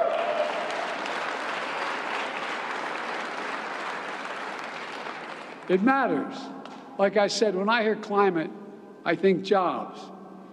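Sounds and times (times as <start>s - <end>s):
audience clapping: 0.0s - 5.8s
speech: 5.7s - 10.2s.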